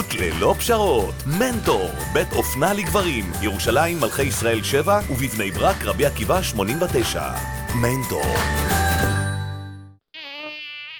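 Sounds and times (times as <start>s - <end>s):
speech: 0.2s - 8.9s
mosquito buzzing in an insect repellent advert: 10.0s - 10.9s.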